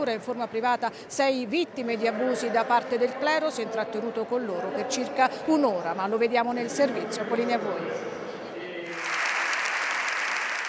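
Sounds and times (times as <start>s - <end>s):
speech: 0.0s - 8.2s
applause in parliament: 8.8s - 10.6s.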